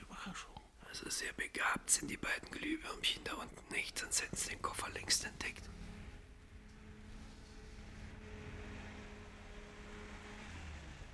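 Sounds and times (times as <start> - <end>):
speech: 0.3 - 5.8
car approaching: 4.4 - 11.1.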